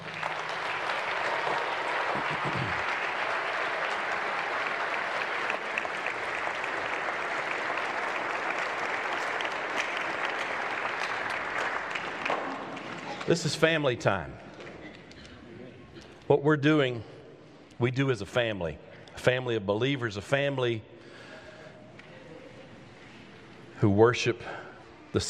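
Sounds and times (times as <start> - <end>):
audience applauding: 0.0 - 13.8
speech: 13.3 - 14.5, 16.3 - 17.1, 17.8 - 20.9, 23.8 - 25.2.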